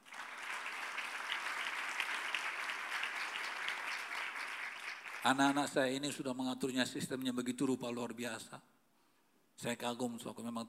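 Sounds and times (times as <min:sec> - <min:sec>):
crowd clapping: 0:00.0 - 0:05.8
speech: 0:05.2 - 0:08.7, 0:09.6 - 0:10.6.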